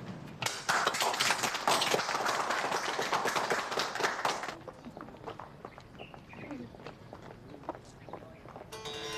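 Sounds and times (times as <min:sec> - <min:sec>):
audience standing up and applauding: 0:00.4 - 0:04.7.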